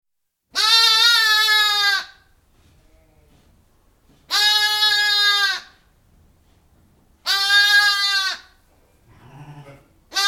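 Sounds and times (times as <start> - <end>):
sheep bleating inside a barn: 0.5 - 2.2, 4.3 - 5.7, 7.2 - 10.2.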